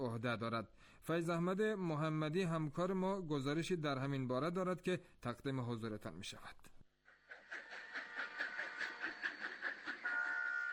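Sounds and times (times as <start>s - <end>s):
speech: 0.2s - 6.8s
train clatter on the Khaf–Herat railway in Afghanistan: 7.3s - 10.7s
sustained tonal train whistle: 10.0s - 10.7s.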